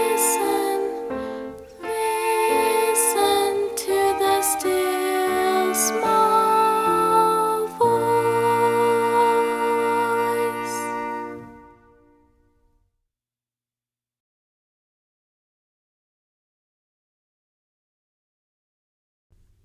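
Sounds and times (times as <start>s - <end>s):
music: 0.0s - 12.9s.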